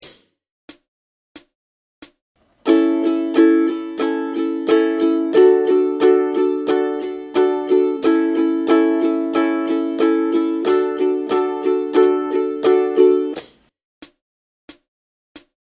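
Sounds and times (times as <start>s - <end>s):
ukulele strumming: 2.6s - 13.5s.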